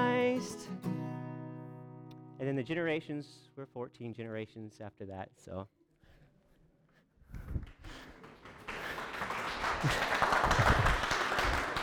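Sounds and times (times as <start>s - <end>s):
speech: 2.4s - 5.8s
crowd applauding: 7.7s - 11.8s.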